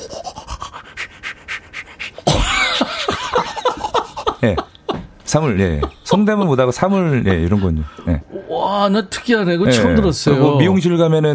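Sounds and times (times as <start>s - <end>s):
voice imitating toothbrushing: 0.0s - 2.3s
laughter: 2.3s - 8.3s
speech: 4.4s - 4.7s, 5.3s - 11.3s.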